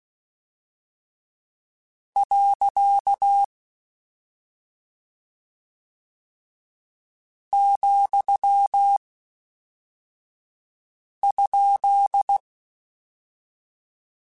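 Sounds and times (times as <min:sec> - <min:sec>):
Morse code CW code groups: 0:02.2 - 0:03.5, 0:07.6 - 0:09.0, 0:11.2 - 0:12.4.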